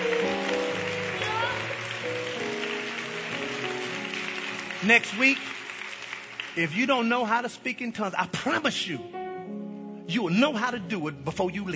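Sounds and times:
audience hand clapping: 0:00.0 - 0:07.3
speech: 0:04.8 - 0:05.6, 0:06.6 - 0:09.2, 0:10.1 - 0:11.7.

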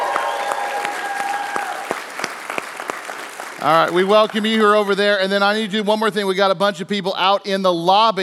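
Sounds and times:
crowd clapping and cheering: 0:00.0 - 0:05.6
speech: 0:03.6 - 0:08.2.

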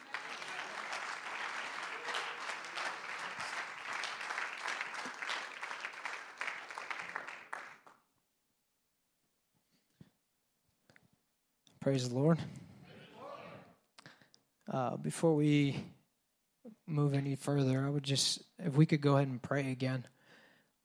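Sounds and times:
audience applause: 0:00.0 - 0:08.0
speech: 0:11.8 - 0:12.6, 0:14.8 - 0:16.0, 0:16.9 - 0:20.2.

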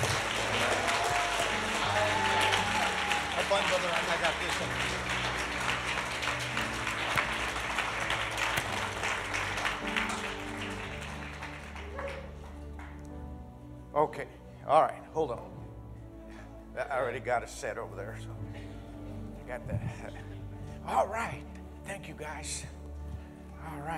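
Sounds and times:
audience applause, hand clapping: 0:00.0 - 0:13.1
speech: 0:03.8 - 0:05.2, 0:14.0 - 0:15.6, 0:16.9 - 0:18.6, 0:19.5 - 0:22.8, 0:23.6 - 0:23.9.

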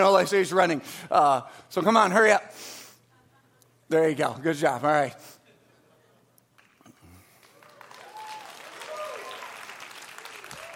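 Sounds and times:
speech: 0:00.0 - 0:02.8, 0:03.9 - 0:05.4
audience applause: 0:06.6 - 0:10.7.

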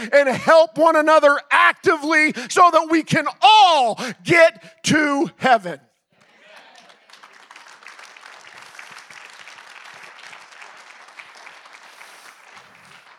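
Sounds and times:
speech: 0:00.0 - 0:05.9
audience clapping: 0:06.2 - 0:13.1.

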